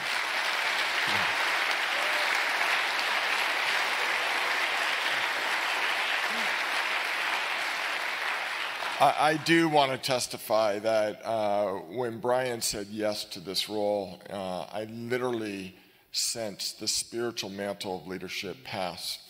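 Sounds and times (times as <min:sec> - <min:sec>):
audience clapping: 0:00.0 - 0:10.0
speech: 0:09.0 - 0:19.2.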